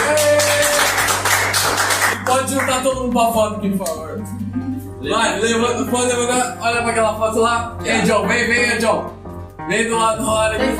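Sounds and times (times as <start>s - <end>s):
audience applause: 0.0s - 2.8s
speech: 2.5s - 10.7s.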